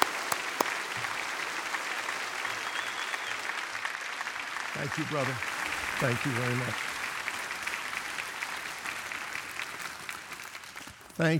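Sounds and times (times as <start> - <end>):
audience applause welcoming a pastor: 0.0 - 10.8
speech: 4.8 - 6.9, 11.2 - 11.3.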